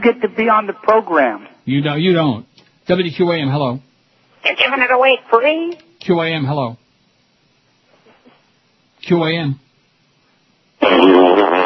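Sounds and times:
speech: 0.0 - 6.8, 9.0 - 9.6, 10.8 - 11.2
fart: 10.8 - 11.6.

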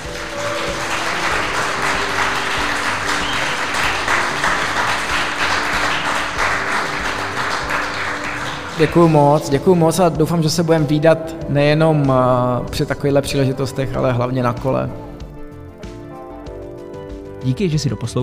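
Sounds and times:
audience applause: 0.0 - 9.9
speech: 8.8 - 15.1, 17.4 - 18.2.

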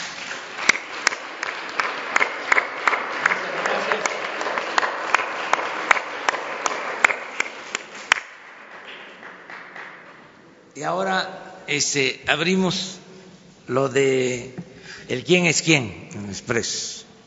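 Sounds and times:
audience applause for guests: 0.0 - 10.4
speech: 10.9 - 13.0, 13.7 - 17.0.

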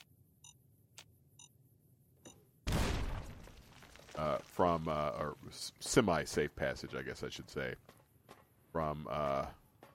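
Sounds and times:
frag mine beeps and ticks in a video game: 0.0 - 1.6, 2.2 - 2.5
speech: 4.2 - 8.0, 8.7 - 9.6.

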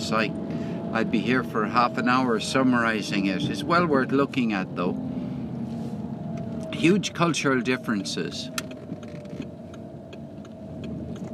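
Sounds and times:
car engine and road hum while driving home from a hotel in Cork: 0.0 - 11.3
speech: 0.1 - 5.1, 6.8 - 8.7
regular light ticking: 8.5 - 11.3.

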